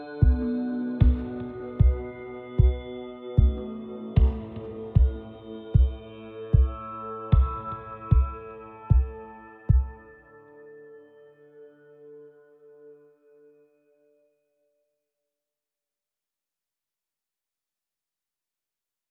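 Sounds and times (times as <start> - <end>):
drums: 0.2 - 10.0.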